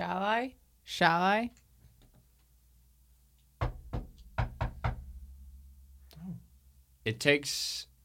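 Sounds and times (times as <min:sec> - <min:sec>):
speech: 0:00.4 - 0:01.6, 0:07.1 - 0:07.9
firm knocking on a door: 0:03.6 - 0:05.2.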